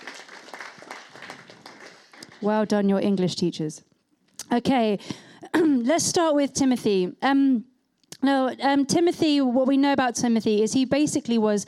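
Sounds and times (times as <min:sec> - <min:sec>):
round of applause: 0:00.0 - 0:02.7
speech: 0:02.4 - 0:03.9, 0:04.5 - 0:11.6.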